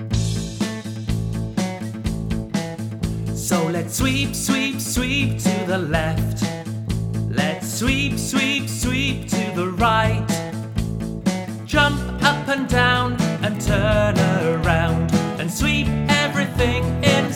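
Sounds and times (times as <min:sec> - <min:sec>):
song: 0:00.1 - 0:06.5, 0:07.3 - 0:17.3.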